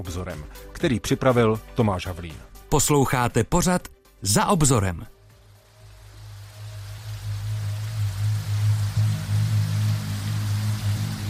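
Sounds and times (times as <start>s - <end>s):
speech: 0.0s - 5.2s
raindrops drumming on window panes of houses: 5.3s - 11.2s.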